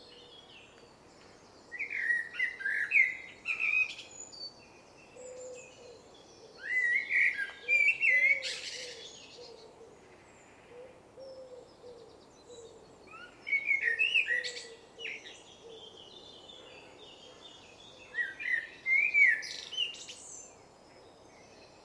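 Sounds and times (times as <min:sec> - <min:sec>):
Eurasian blackbird song: 0:00.0 - 0:21.8.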